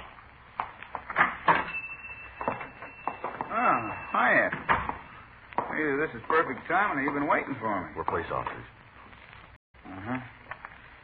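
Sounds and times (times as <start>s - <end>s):
shop door squeaking: 1.1s - 5.3s
speech: 6.0s - 8.8s.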